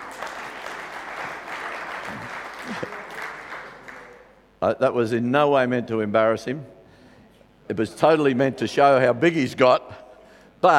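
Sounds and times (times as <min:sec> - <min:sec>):
audience applause: 0:00.0 - 0:04.4
speech: 0:02.1 - 0:03.0, 0:04.6 - 0:06.8, 0:07.7 - 0:10.0, 0:10.6 - 0:10.7.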